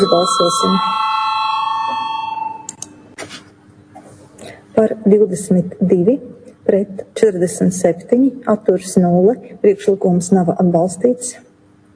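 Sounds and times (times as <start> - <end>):
speech: 0.0 - 1.1, 4.8 - 11.5
parliament voting bell ringing: 0.0 - 3.1.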